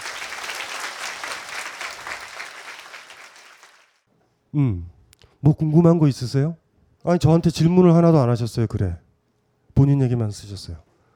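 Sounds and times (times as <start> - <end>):
audience clapping: 0.0 - 4.0
speech: 4.5 - 9.0, 9.8 - 10.9.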